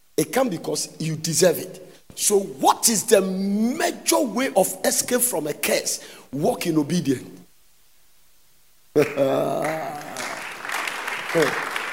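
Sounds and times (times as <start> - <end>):
speech: 0.2 - 7.4, 9.0 - 10.0, 11.3 - 11.7
few people clapping: 9.0 - 11.9.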